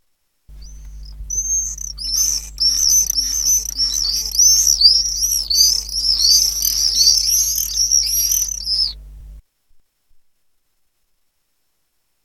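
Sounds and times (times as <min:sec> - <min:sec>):
common swift screams: 0:00.6 - 0:09.0
low steady hum: 0:00.6 - 0:09.4.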